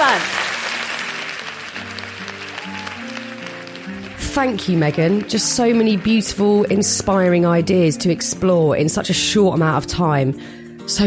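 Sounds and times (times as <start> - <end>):
audience applause: 0.0 - 6.9
speech: 4.4 - 11.0.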